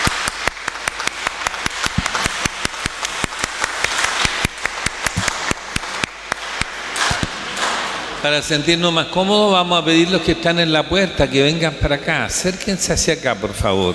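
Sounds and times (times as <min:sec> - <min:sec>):
audience applauding: 0:00.0 - 0:08.2
speech: 0:08.2 - 0:13.9.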